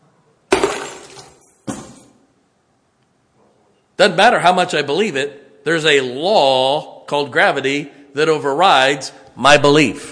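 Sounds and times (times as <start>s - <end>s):
bunch of keys dropping on a hard surface: 0.7s - 2.2s
speech: 4.0s - 10.1s.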